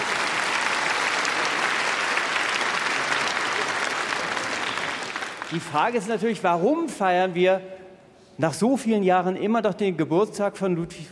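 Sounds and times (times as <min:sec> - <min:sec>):
audience applause: 0:00.0 - 0:05.8
speech: 0:05.5 - 0:07.8, 0:08.4 - 0:11.1.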